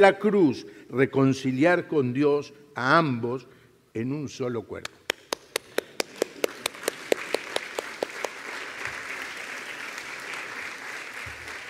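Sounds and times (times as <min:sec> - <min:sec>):
speech: 0:00.0 - 0:05.0
audience applause: 0:05.3 - 0:11.6.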